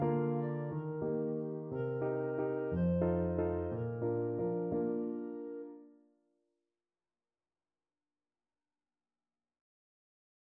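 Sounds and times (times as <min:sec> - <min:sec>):
clarinet playing a waltz: 0:00.0 - 0:05.6.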